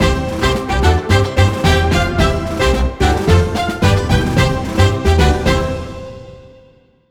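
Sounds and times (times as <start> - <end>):
collectable fanfare: 0.0 - 6.8.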